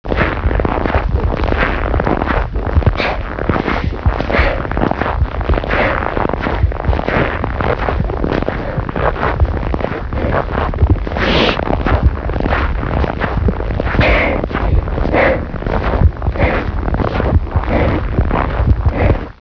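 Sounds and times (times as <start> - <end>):
footsteps walking: 0.1 - 19.4.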